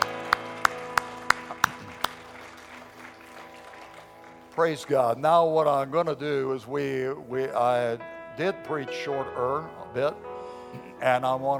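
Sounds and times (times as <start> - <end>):
audience clapping in rhythm: 0.0 - 5.8
speech: 4.6 - 11.5.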